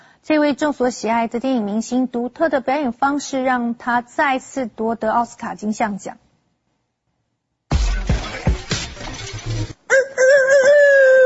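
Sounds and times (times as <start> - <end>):
speech: 0.3 - 6.2
loud clattering, crashing noise: 7.7 - 9.8
person imitating a rooster crow: 9.9 - 11.2.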